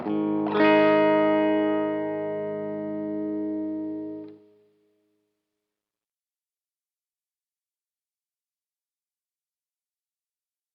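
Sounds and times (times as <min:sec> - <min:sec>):
electric guitar through a 2x10 amplifier: 0:00.0 - 0:04.4.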